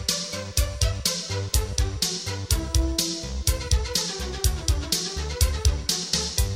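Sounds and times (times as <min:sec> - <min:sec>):
flutes playing: 0:00.0 - 0:06.4.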